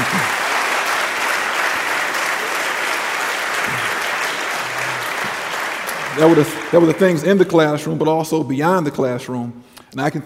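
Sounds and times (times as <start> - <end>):
audience applause at a ministry gathering: 0.0 - 7.8
speech: 6.2 - 10.2.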